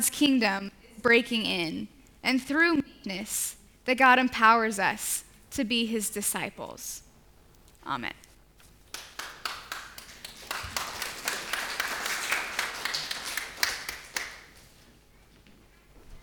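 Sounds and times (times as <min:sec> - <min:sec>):
speech: 0:00.0 - 0:07.0, 0:07.9 - 0:08.2
audience clapping: 0:08.8 - 0:14.6.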